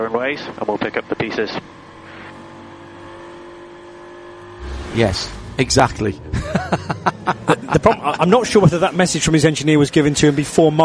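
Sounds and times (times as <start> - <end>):
speech: 0.0 - 1.8, 5.0 - 10.8
Aston Martin race car driving past during a motor race: 4.3 - 7.8
laughter: 6.2 - 8.8.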